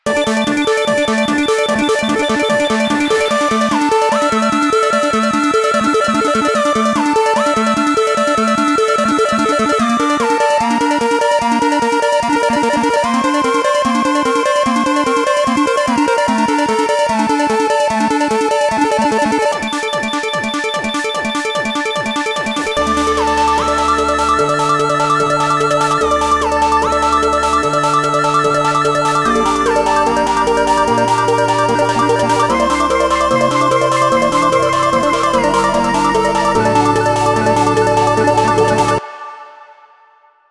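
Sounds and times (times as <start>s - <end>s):
game music loop: 0.0s - 39.0s.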